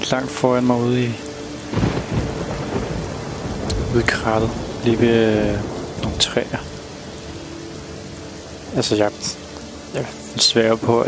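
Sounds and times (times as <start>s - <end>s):
dense rain hissing: 0.0s - 11.0s
speech: 0.1s - 1.9s, 3.9s - 6.7s, 8.7s - 11.0s
rolling thunder rumbling: 1.0s - 9.4s.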